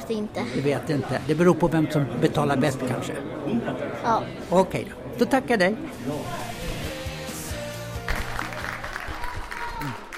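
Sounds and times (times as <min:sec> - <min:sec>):
speech: 0:00.1 - 0:06.6
crowd applauding and cheering after a goal: 0:07.3 - 0:10.1.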